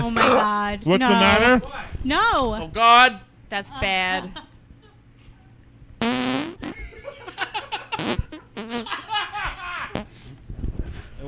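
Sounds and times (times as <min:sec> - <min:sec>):
speech: 0:00.0 - 0:04.5
fart: 0:06.0 - 0:06.8, 0:08.0 - 0:08.9
laughter: 0:06.7 - 0:10.0.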